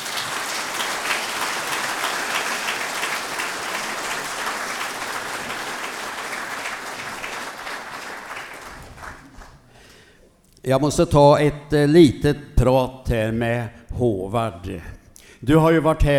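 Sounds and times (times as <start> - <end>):
audience applause: 0.0 - 9.7
speech: 10.7 - 16.1.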